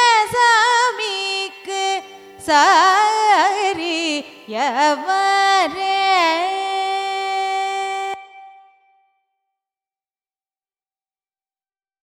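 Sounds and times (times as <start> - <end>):
carnatic raga music: 0.0 - 9.1.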